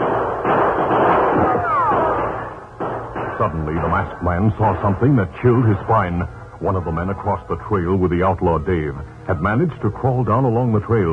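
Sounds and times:
repeated gunshots in an outlaw ambush along a rocky trail: 0.0s - 5.2s
speech: 3.5s - 11.1s.

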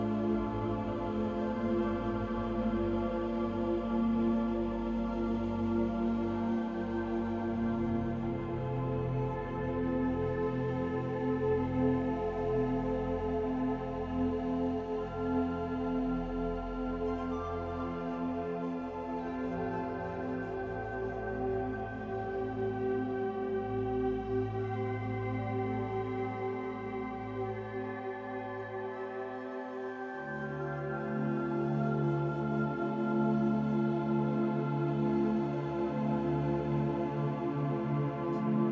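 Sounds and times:
soft soothing music with layered pads over deep bass: 0.0s - 38.6s.

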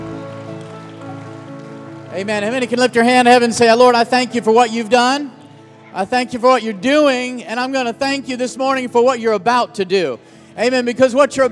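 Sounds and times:
audience applause: 0.0s - 4.6s
speech: 2.1s - 11.4s.

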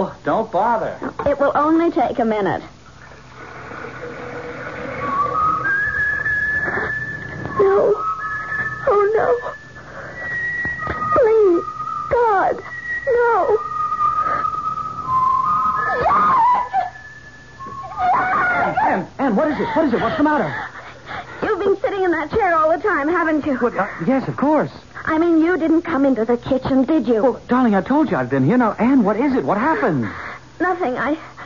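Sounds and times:
speech: 0.0s - 2.8s, 7.6s - 8.0s, 8.9s - 9.6s, 12.4s - 13.7s, 18.8s - 20.6s, 22.0s - 31.3s
kettle whistling: 3.0s - 19.1s.

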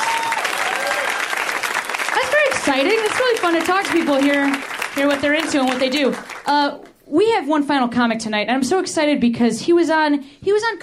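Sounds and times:
audience applause: 0.0s - 6.5s
speech: 2.6s - 10.8s.

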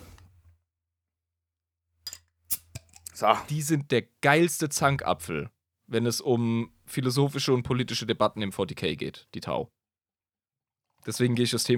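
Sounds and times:
beer bottle being opened: 2.1s - 3.2s
speech: 3.2s - 9.8s, 11.0s - 11.7s.

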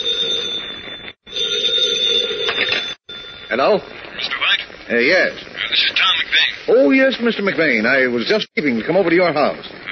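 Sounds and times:
telephone bell ringing: 0.0s - 4.0s
speech: 3.5s - 4.0s, 4.9s - 6.1s, 6.7s - 9.8s.

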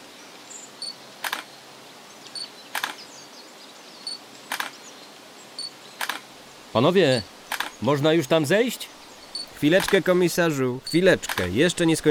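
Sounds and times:
quiet hissy background: 0.0s - 12.0s
camera shutter clicks taking crime scene photos: 1.2s - 1.4s, 2.8s - 3.0s, 4.5s - 4.8s, 7.5s - 7.7s, 11.3s - 11.5s
speech: 6.7s - 8.9s, 9.6s - 12.0s.

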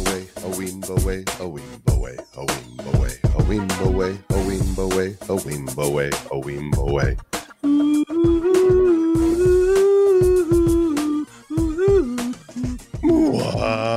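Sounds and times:
speech: 0.6s - 7.4s
whale moaning calls: 7.6s - 13.9s.

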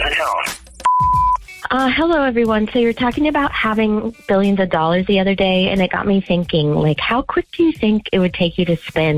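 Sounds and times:
speech: 0.2s - 0.6s, 1.7s - 9.1s
voicemail recording beep: 0.8s - 1.4s.

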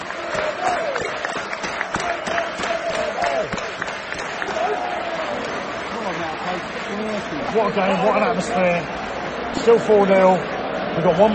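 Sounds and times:
stadium crowd applause: 0.0s - 11.3s
speech: 7.6s - 11.3s.

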